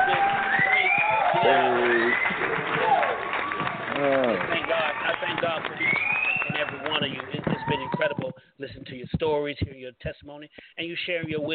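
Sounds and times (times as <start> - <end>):
audience applause: 0.0 - 8.2
cheering whoops and shouts: 0.0 - 8.3
speech: 1.4 - 2.8, 7.0 - 11.5.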